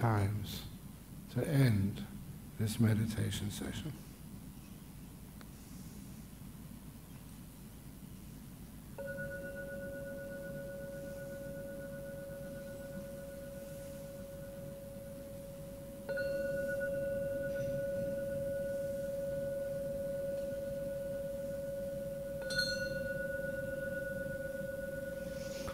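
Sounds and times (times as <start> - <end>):
speech: 0.0 - 0.7, 1.3 - 4.1
gong ringing: 9.0 - 25.7.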